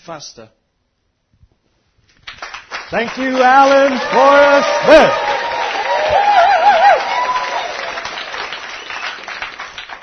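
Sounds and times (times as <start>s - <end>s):
speech: 0.0s - 0.6s, 2.9s - 5.3s
enthusiastic audience applause: 2.2s - 10.0s.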